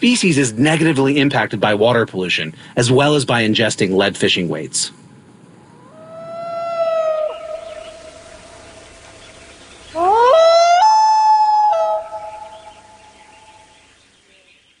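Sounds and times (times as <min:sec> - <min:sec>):
speech: 0:00.0 - 0:05.1
common loon wailing: 0:05.7 - 0:08.8, 0:09.9 - 0:13.2.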